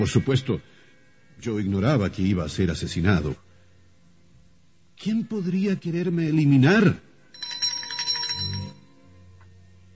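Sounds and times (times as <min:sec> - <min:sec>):
speech: 0:00.0 - 0:00.8, 0:01.4 - 0:03.4, 0:05.0 - 0:07.1
call bell rung to summon a maid: 0:07.3 - 0:09.1.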